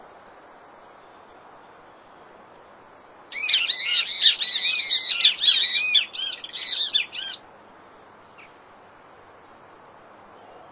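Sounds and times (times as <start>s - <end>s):
great kiskadee squawking: 3.4s - 7.4s.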